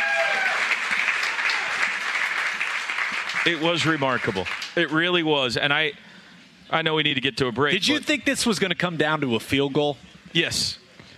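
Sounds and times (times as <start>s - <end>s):
crowd applause: 0.0s - 5.1s
speech: 3.4s - 6.1s, 6.7s - 10.8s.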